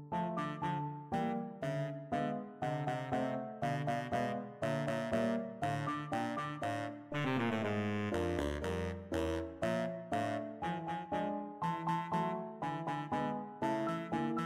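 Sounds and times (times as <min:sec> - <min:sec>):
baritone saxophone: 0:00.2 - 0:14.4.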